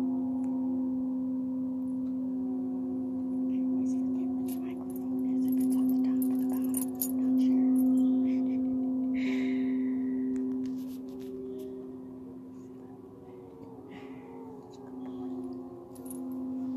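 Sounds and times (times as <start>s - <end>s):
Tibetan singing bowls humming in a layered drone: 0.0s - 16.7s
light metallic clinks and jingles: 4.4s - 8.7s, 14.7s - 16.7s.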